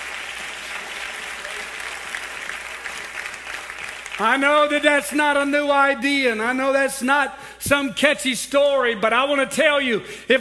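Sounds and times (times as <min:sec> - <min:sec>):
audience clapping hands: 0:00.0 - 0:05.5
speech: 0:04.2 - 0:10.3.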